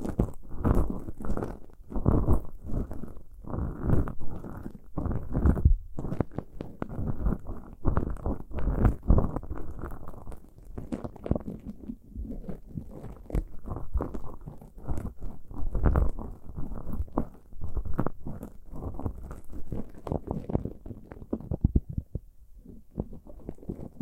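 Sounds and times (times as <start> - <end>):
ear picking with muffled scraping and rubbing: 0.0 - 24.0.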